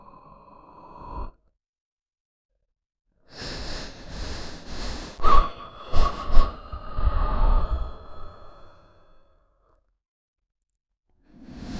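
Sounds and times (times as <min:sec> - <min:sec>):
troll sniffing the air: 0:03.3 - 0:08.6.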